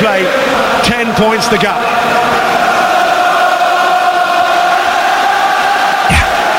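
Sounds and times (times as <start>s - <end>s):
speech: 0.0s - 2.2s
rugby stadium crowd singing: 0.0s - 6.5s
thump: 6.1s - 6.4s.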